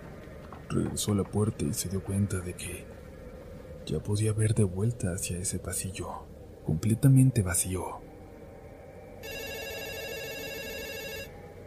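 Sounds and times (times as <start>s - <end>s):
speech: 0.7s - 3.0s, 3.9s - 8.0s
telephone ringing: 9.2s - 11.4s.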